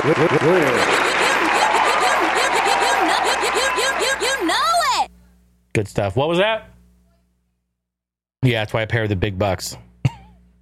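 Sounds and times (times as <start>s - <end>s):
speech: 0.0s - 1.1s, 5.8s - 6.7s, 8.4s - 9.9s
round of applause: 0.0s - 4.4s
people whooping and laughing: 0.2s - 5.0s.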